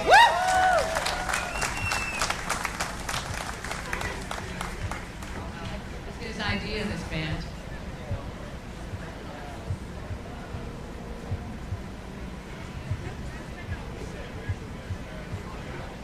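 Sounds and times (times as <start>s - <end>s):
rising whistle or cheer: 0.0s - 2.4s
audience applause: 0.0s - 5.5s
crowd murmur: 0.0s - 16.0s.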